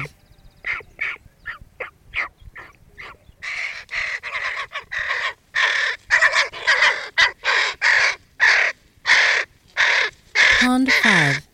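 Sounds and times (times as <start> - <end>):
hooded crow cawing: 3.4 - 11.5
speech: 10.7 - 11.5.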